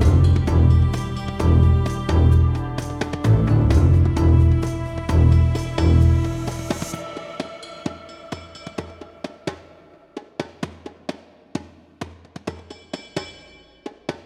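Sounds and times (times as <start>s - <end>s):
combat music: 0.0s - 10.2s.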